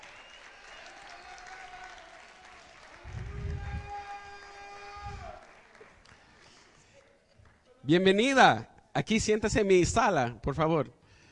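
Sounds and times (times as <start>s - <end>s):
cheering and whoops: 0.0s - 5.6s
audience applauding: 0.0s - 7.7s
speech: 7.9s - 11.0s.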